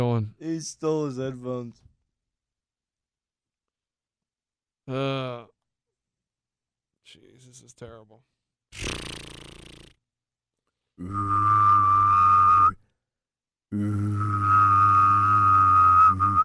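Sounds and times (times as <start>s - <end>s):
speech: 0.0s - 1.9s, 4.9s - 5.6s, 7.1s - 9.3s, 11.0s - 11.6s, 13.7s - 14.2s
person humming: 11.0s - 12.6s, 13.7s - 16.4s
person whistling: 11.0s - 12.8s, 13.8s - 16.4s.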